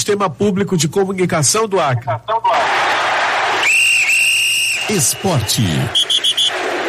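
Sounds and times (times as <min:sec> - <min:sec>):
speech: 0:00.1 - 0:02.7, 0:04.9 - 0:06.0
referee whistle: 0:03.6 - 0:06.7.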